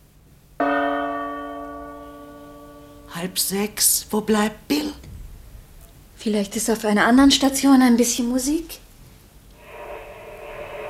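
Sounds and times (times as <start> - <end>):
radio time signal gong stroke: 0.6 - 3.2
speech: 3.2 - 4.8, 6.2 - 8.8.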